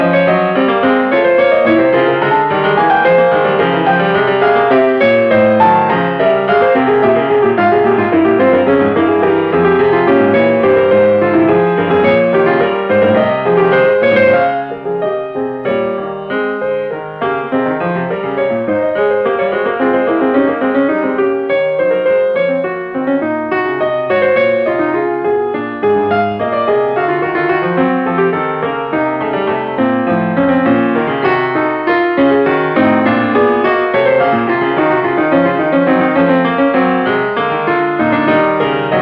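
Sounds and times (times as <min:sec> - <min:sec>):
fugue in B flat minor: 0:00.0 - 0:38.9.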